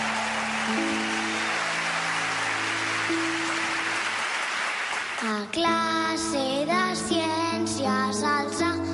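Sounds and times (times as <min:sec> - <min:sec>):
crowd clapping loudly: 0:00.0 - 0:05.6
speech: 0:05.5 - 0:08.8.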